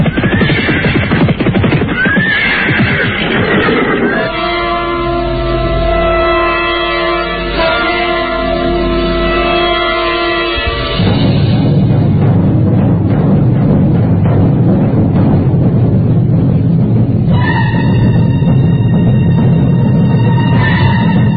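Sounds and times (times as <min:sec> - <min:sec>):
horses galloping: 0:00.0 - 0:04.3
sustained droning tones: 0:04.0 - 0:21.3.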